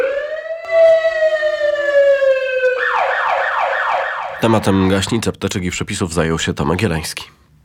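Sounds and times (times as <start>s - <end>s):
fire engine siren wailing: 0.0s - 4.4s
speech: 4.4s - 7.4s.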